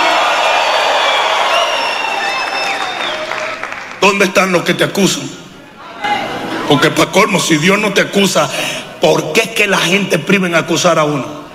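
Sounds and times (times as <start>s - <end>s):
crowd shouting a victory cheer: 0.0s - 4.2s
clapping: 1.0s - 4.0s
speech: 4.0s - 5.4s, 6.7s - 11.4s.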